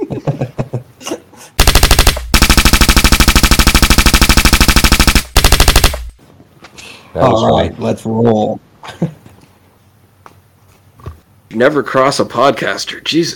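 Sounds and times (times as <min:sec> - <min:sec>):
speech: 0:00.1 - 0:00.6, 0:07.2 - 0:09.2, 0:11.5 - 0:13.3
rapid automatic gunfire sound effects: 0:01.6 - 0:06.2.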